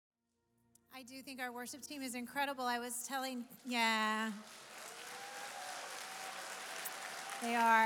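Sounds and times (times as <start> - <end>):
speech: 1.0 - 4.7, 7.4 - 7.8
audience applause for a worship team: 3.6 - 7.8.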